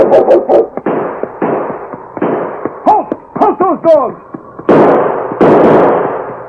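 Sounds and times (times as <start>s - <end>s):
dogs yelping: 0.0s - 0.8s
gunshots: 0.0s - 6.4s
people shouting: 2.8s - 4.2s.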